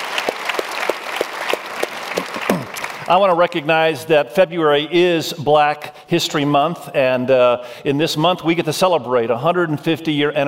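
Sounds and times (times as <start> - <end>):
audience applause: 0.0 - 3.4
speech: 3.1 - 10.4.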